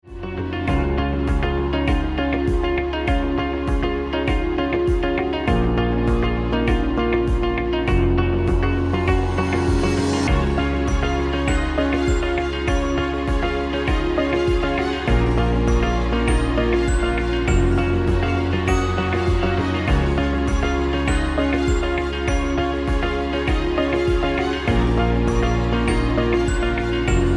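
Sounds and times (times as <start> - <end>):
motivational music: 0.1 - 27.3.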